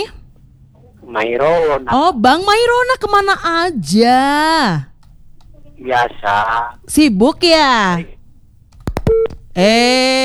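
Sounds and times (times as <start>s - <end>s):
speech: 1.1s - 4.9s, 5.8s - 8.2s, 9.6s - 10.2s
telephone line clicks: 8.7s - 9.6s
telephone disconnect tone: 8.8s - 9.6s.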